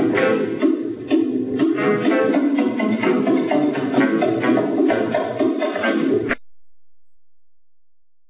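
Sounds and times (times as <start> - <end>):
drums: 0.0 - 6.4.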